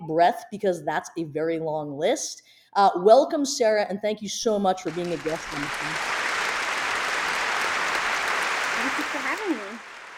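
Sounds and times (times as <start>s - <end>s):
speech: 0.1s - 6.2s
small talk-show studio audience applauding: 4.9s - 10.1s.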